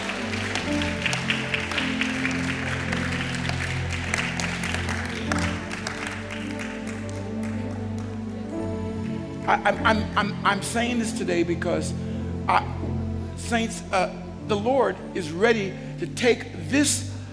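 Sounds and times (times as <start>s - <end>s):
audience clapping: 0.0s - 9.8s
speech: 9.5s - 12.7s, 13.5s - 17.1s.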